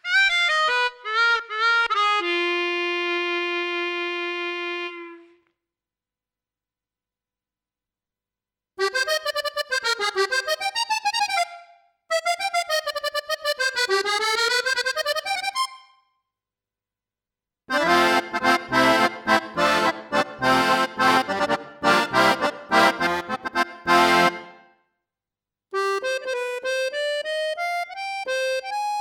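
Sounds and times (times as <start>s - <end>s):
accordion: 0.0s - 5.4s, 8.8s - 16.0s, 17.7s - 24.8s, 25.7s - 29.0s.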